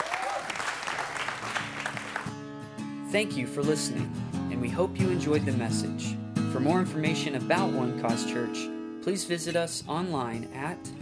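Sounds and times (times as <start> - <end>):
crowd applauding in a large room: 0.0 - 2.4
speech: 3.1 - 10.9.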